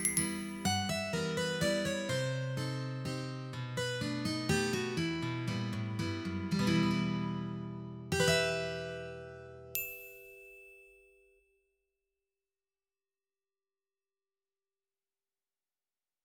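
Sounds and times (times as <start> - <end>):
romantic guitar waltz: 0.0 - 9.8.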